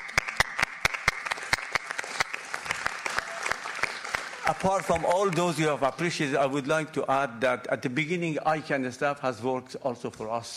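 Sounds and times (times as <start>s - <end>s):
audience applause: 0.0s - 5.8s
speech: 4.5s - 10.5s.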